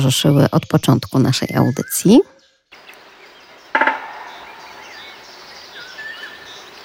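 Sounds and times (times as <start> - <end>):
speech: 0.0 - 2.3
soft bird calls: 0.0 - 6.8
woodpecker drumming on a lamp post: 3.7 - 5.1.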